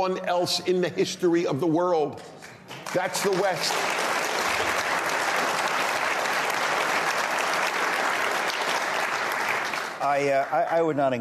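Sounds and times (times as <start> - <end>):
speech: 0.0 - 4.8, 10.0 - 11.1
audience applause: 2.7 - 10.8.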